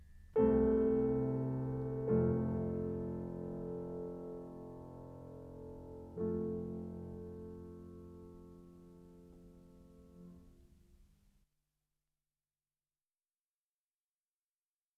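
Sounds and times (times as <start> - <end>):
piano piece in F major: 0.0 - 10.7.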